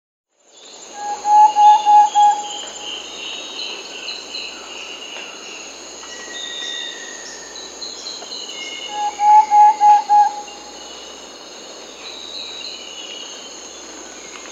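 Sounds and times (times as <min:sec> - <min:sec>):
thrush-like antpitta giving hollow whistles in South America: 0:01.0 - 0:02.7, 0:08.9 - 0:10.6.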